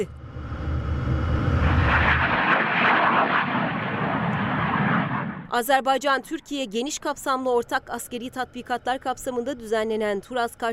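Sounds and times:
speech: 0.0s - 0.2s, 5.5s - 10.7s
F-16 fighter jets flying overhead: 0.0s - 5.5s.

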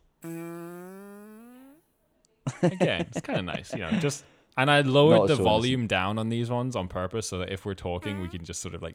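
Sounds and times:
long fart sound effect button: 0.1s - 1.9s, 8.0s - 8.4s
speech: 2.5s - 8.9s.

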